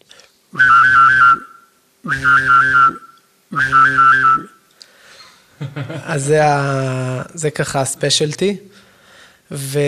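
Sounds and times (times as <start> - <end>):
whistled imitation of a vibrating cell phone: 0.5 - 4.7
speech: 2.1 - 4.6, 5.7 - 8.9, 9.5 - 9.8.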